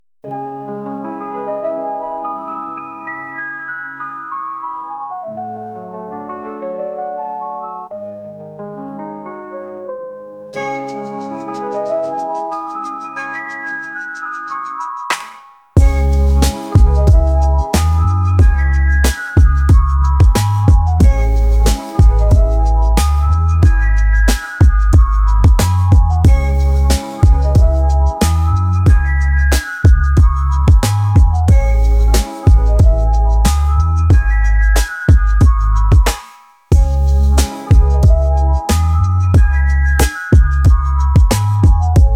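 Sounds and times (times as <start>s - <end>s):
trap beat: 15.8s - 42.1s.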